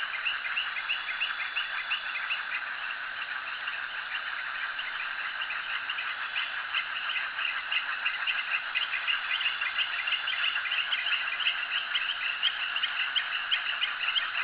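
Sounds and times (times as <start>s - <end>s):
frogs at jetty: 0.0s - 14.4s.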